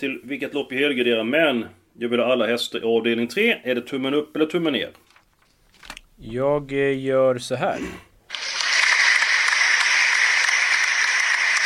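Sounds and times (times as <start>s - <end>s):
speech: 0.0s - 5.1s, 6.2s - 8.1s
applause: 8.3s - 11.6s.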